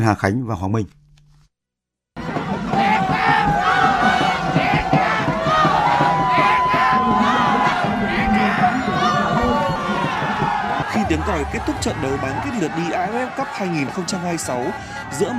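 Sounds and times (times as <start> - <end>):
speech: 0.0 - 1.0, 11.1 - 15.3
football fans cheering and shouting on Nguyen Hue walking street: 2.2 - 15.3.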